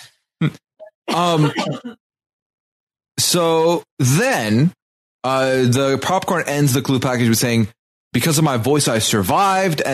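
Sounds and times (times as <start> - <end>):
person coughing: 0.4 - 2.0
speech: 0.4 - 2.0, 3.2 - 9.9.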